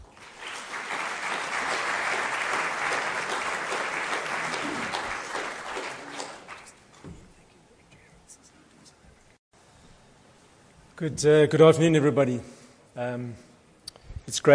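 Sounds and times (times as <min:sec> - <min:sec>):
audience applauding to welcome guest speakers: 0:00.0 - 0:06.9
speech: 0:11.0 - 0:13.5, 0:14.4 - 0:14.5.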